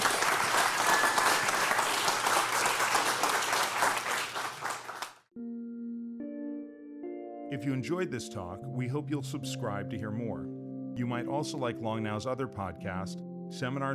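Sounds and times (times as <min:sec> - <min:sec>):
audience applause: 0:00.0 - 0:05.3
speech: 0:07.5 - 0:13.9.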